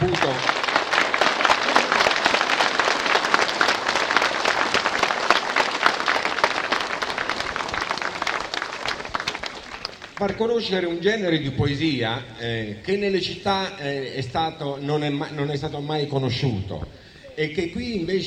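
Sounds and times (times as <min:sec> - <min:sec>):
audience applauding poets at a poetry event: 0:00.0 - 0:10.5
speech: 0:10.2 - 0:18.2.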